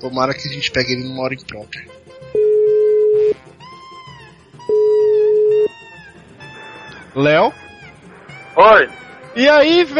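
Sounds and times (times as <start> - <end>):
speech: 0.0 - 2.3, 7.2 - 7.6, 8.6 - 9.9
ringback tones of an outgoing phone call: 2.3 - 3.4, 4.6 - 5.8.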